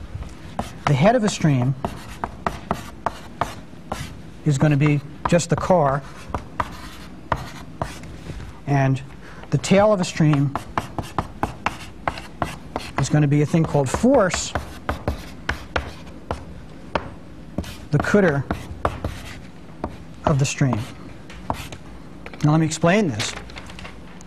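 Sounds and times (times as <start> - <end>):
writing on a board: 0.6 - 4.1, 4.7 - 8.0, 9.6 - 21.8
speech: 0.9 - 2.0, 4.4 - 6.2, 8.7 - 10.7, 13.1 - 14.7, 17.9 - 18.6, 20.3 - 21.0, 22.4 - 23.4.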